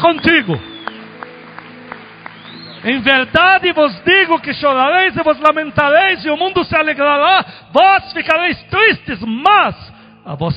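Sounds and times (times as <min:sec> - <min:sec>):
speech: 0:00.0 - 0:00.8, 0:02.8 - 0:10.5
applause: 0:00.0 - 0:05.7.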